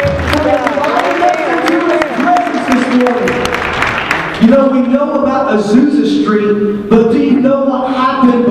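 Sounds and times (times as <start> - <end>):
audience hand clap of praise: 0.0 - 4.8
speech: 4.9 - 8.4.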